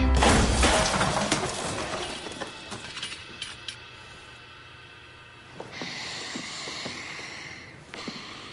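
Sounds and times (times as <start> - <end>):
chair thrown and crashing: 0.0 - 2.8.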